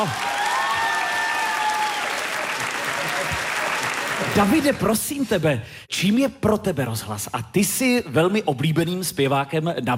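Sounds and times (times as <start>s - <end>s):
speech: 0.0s - 0.3s, 4.2s - 9.9s
audience applause: 0.0s - 5.2s.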